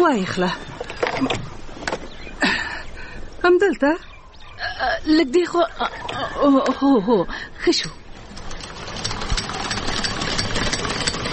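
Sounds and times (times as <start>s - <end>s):
speech: 0.1s - 1.6s, 3.4s - 4.1s, 4.8s - 8.0s
sewing machine running for home tailoring: 8.3s - 11.3s.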